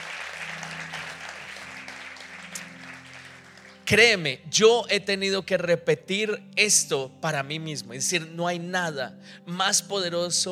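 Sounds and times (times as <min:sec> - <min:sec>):
audience applause: 0:00.0 - 0:03.9
speech: 0:03.9 - 0:10.5.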